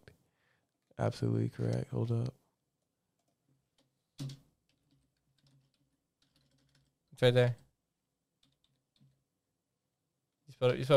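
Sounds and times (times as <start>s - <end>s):
speech: 1.0s - 2.4s, 7.2s - 7.6s, 10.6s - 10.9s
quick typing on a computer keyboard: 4.2s - 6.9s, 8.4s - 9.2s.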